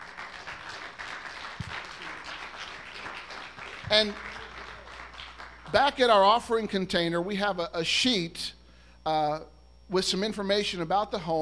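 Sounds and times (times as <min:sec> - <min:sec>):
church congregation applauding to welcome a visiting preacher: 0:00.0 - 0:06.3
speech: 0:03.9 - 0:04.3, 0:05.7 - 0:11.4.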